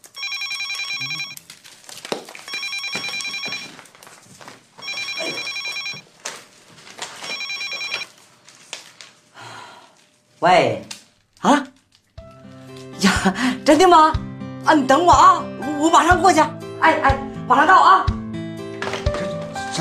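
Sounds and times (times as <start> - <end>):
telephone ringing with high-pitched electronic trilling: 0.0 - 1.4, 2.5 - 3.8, 4.8 - 6.0, 7.2 - 8.1
speech: 10.4 - 11.6, 13.2 - 18.1.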